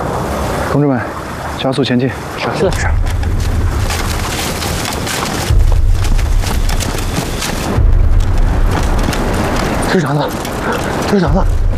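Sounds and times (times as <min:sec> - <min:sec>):
speech: 0:00.7 - 0:03.1, 0:09.9 - 0:11.7
landmine explosions: 0:02.8 - 0:11.7.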